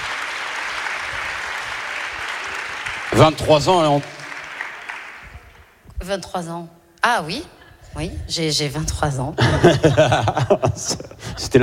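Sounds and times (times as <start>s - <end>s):
audience applause: 0.0s - 5.7s
speech: 3.2s - 4.2s, 6.0s - 11.6s
laughter: 9.4s - 11.6s.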